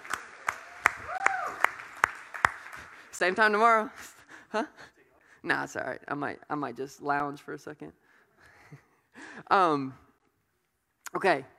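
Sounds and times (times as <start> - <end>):
audience applause: 0.0 - 3.2
speech: 3.2 - 8.0, 9.4 - 10.0, 11.1 - 11.5.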